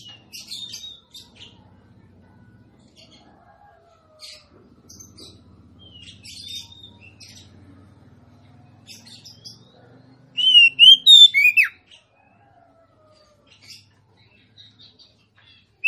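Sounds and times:
female Oriental magpie-robin singing rich whistled notes: 0:10.4 - 0:11.7.

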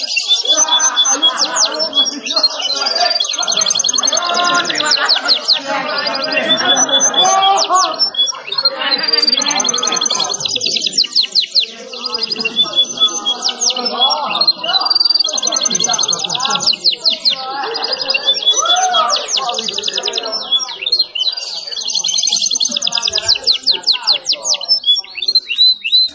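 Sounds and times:
canary song: 0:00.0 - 0:26.1
laughter: 0:00.0 - 0:26.1
low chattering notes: 0:00.0 - 0:26.1.

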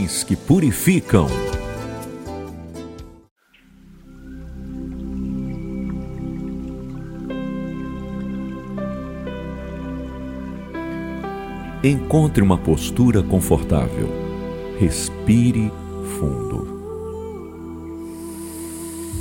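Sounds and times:
speech: 0:00.0 - 0:01.6, 0:11.8 - 0:14.2, 0:14.8 - 0:16.7
water dripping: 0:03.4 - 0:11.0
soft ambient tonal drone: 0:03.6 - 0:19.1.

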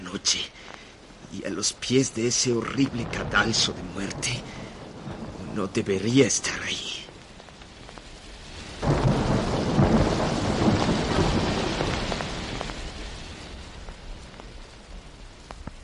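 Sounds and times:
heavy roll of thunder from a night storm: 0:00.0 - 0:15.8
steady rain: 0:00.0 - 0:15.8
speech: 0:00.1 - 0:04.6, 0:05.6 - 0:06.9
sharp raindrop taps: 0:02.7 - 0:08.2, 0:08.8 - 0:15.8.

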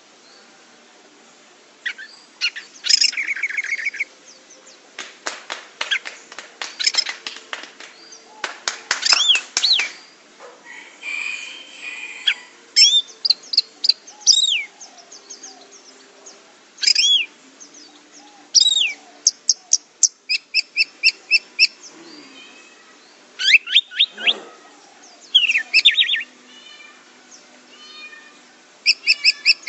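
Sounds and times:
orange-headed thrush singing: 0:01.8 - 0:04.9, 0:05.9 - 0:10.3, 0:12.2 - 0:26.4, 0:28.8 - 0:29.6.

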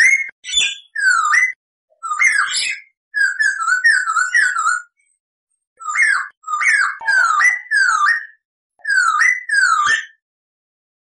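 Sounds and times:
Masked laughingthrush singing loud whistled and chattering notes: 0:00.0 - 0:05.2, 0:05.8 - 0:10.2.

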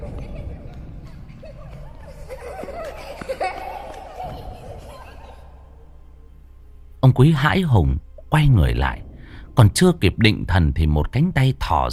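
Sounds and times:
children giggling indoors: 0:00.0 - 0:06.0
speech: 0:07.0 - 0:09.0, 0:09.6 - 0:11.9.

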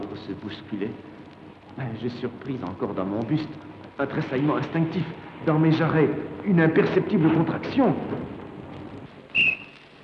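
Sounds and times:
speech: 0:00.3 - 0:01.2, 0:01.8 - 0:08.3
whistle blowing: 0:09.3 - 0:09.8.

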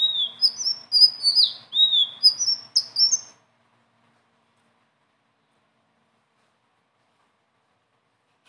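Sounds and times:
leafbird singing: 0:00.0 - 0:03.4.

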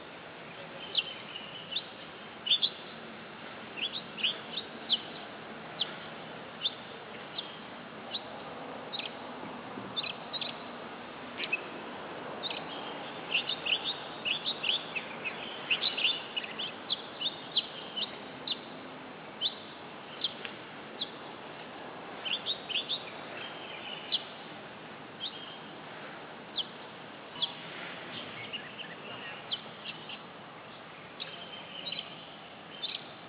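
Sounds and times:
Oriental magpie-robin chirping: 0:00.0 - 0:03.0, 0:03.8 - 0:06.0, 0:06.6 - 0:08.3, 0:08.9 - 0:09.3, 0:09.9 - 0:10.6, 0:11.4 - 0:11.7, 0:12.4 - 0:18.8, 0:19.4 - 0:21.4, 0:22.2 - 0:24.4, 0:25.2 - 0:25.7, 0:26.6 - 0:33.2
steady hiss: 0:00.0 - 0:33.2.

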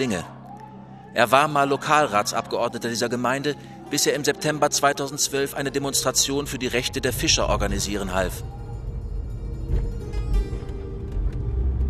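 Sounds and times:
speech: 0:00.0 - 0:00.4, 0:01.2 - 0:08.6
car driving along a narrow lane: 0:05.7 - 0:11.8.

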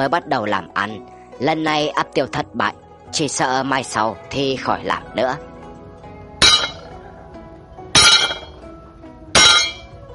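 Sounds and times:
speech: 0:00.0 - 0:05.5
blacksmith hammering at a forge: 0:06.4 - 0:06.9, 0:08.0 - 0:08.6, 0:09.4 - 0:10.0.

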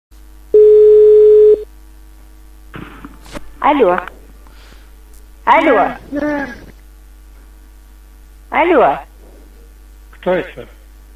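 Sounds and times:
low telephone line hum: 0:00.2 - 0:11.1
telephone line tone as a number is dialled: 0:00.5 - 0:01.7
speech: 0:03.7 - 0:04.2, 0:05.5 - 0:06.7, 0:08.5 - 0:09.1, 0:10.2 - 0:10.8.

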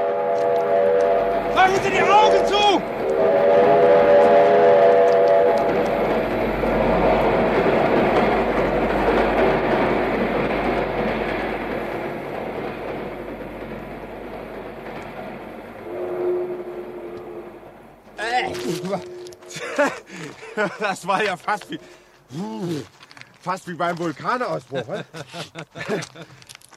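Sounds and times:
train whistle blare: 0:00.0 - 0:06.1, 0:15.8 - 0:20.0
express train roaring past: 0:00.0 - 0:22.3
speech: 0:01.6 - 0:03.7, 0:20.8 - 0:26.4
laughter: 0:18.8 - 0:21.6, 0:24.6 - 0:26.7.

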